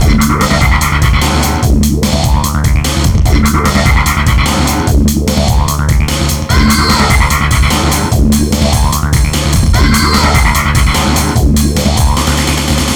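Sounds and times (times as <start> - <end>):
hardcore breakbeat in D major: 0.0 - 12.9.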